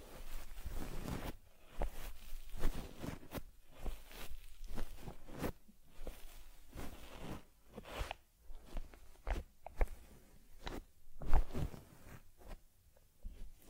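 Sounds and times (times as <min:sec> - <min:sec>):
brushing and rubbing on a teddy bear's fur: 0:00.0 - 0:12.6.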